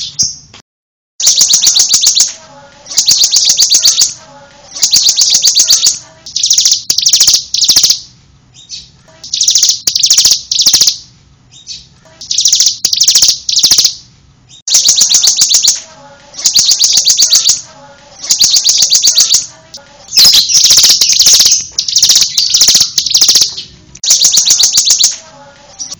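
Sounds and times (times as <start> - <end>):
bird giving rapid high chattering notes: 1.2 - 25.9.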